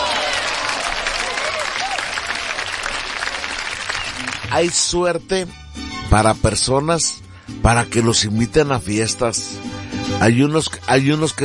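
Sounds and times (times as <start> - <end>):
audience applause: 0.0 - 4.8
speech: 4.5 - 11.4.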